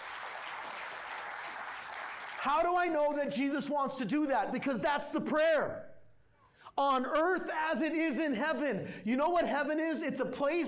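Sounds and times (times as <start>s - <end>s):
audience clapping: 0.0s - 3.2s
speech: 2.4s - 5.9s, 6.8s - 10.6s.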